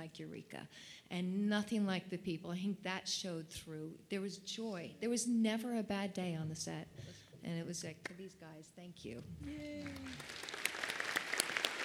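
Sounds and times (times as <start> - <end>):
speech: 0.1 - 10.6
audience applause: 9.2 - 11.8.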